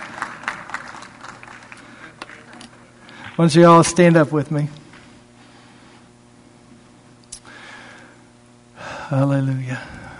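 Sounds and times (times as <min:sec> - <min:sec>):
audience clapping: 0:00.0 - 0:03.5
speech: 0:03.4 - 0:04.8, 0:09.1 - 0:10.0.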